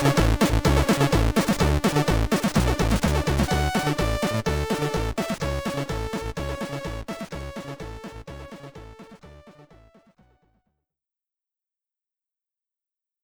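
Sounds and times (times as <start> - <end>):
Commodore 64 SID stereo intro music: 0.0 - 10.1.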